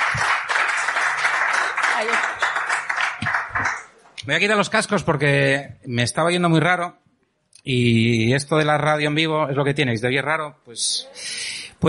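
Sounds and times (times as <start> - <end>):
applause: 0.0 - 4.0
speech: 2.0 - 2.4, 4.3 - 7.0, 7.6 - 11.8.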